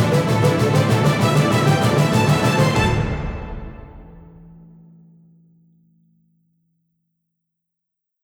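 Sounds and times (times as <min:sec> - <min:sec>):
heated debate news background music: 0:00.0 - 0:04.4.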